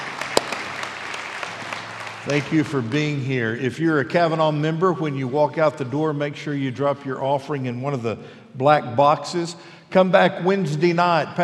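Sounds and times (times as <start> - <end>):
audience applauding: 0.0 - 3.6
speech: 2.2 - 11.4.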